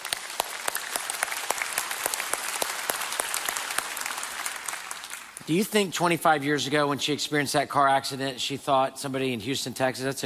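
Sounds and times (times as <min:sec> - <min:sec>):
audience applause: 0:00.0 - 0:05.5
speech: 0:05.5 - 0:10.2.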